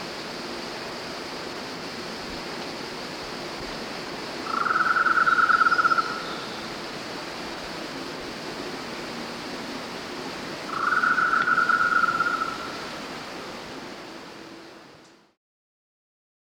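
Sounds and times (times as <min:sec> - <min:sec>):
golden-naped barbet giving fast rattling trills: 0:04.4 - 0:06.7, 0:10.7 - 0:12.8.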